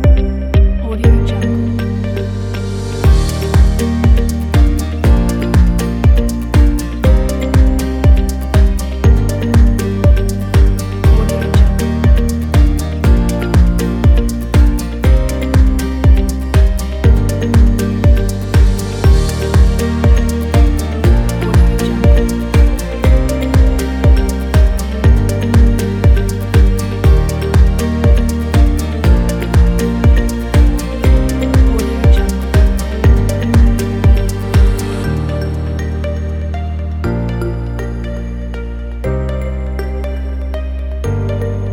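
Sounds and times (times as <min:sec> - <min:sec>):
upbeat corporate music: 0:00.0 - 0:41.7.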